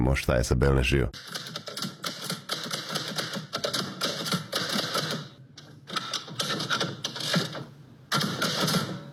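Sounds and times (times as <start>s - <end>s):
speech: 0.0s - 1.6s
typewriter keys striking metal letters onto paper in a Melbourne typewriter workshop: 1.2s - 5.3s, 5.9s - 9.1s.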